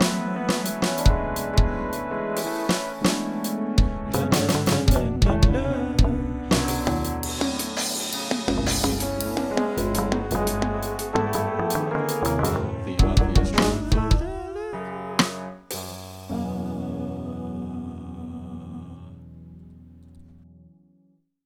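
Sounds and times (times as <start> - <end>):
band practicing: 0.0 - 16.8.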